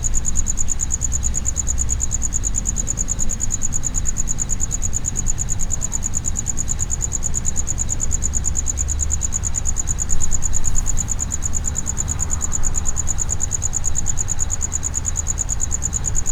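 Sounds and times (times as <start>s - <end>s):
cricket chirping: 0.0s - 16.3s.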